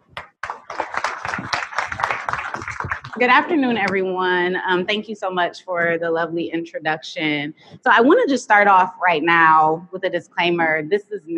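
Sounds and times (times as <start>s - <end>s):
audience applause for a guest speaker: 0.2s - 3.9s
speech: 3.2s - 11.3s.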